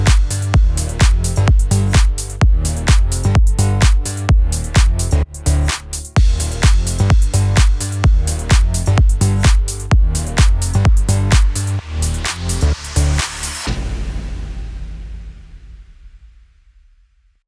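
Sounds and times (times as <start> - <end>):
future house music in D sharp minor: 0.0 - 13.8.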